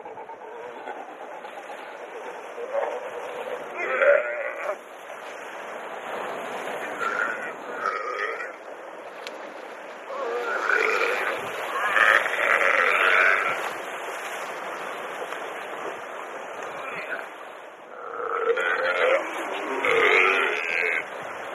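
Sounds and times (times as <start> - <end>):
seal bleating calls: 2.3 - 4.8, 6.8 - 8.6, 10.1 - 13.8, 17.9 - 21.2.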